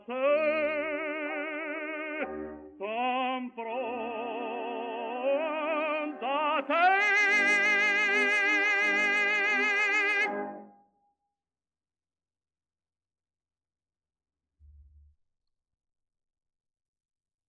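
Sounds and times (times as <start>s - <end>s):
song: 0.2s - 10.9s.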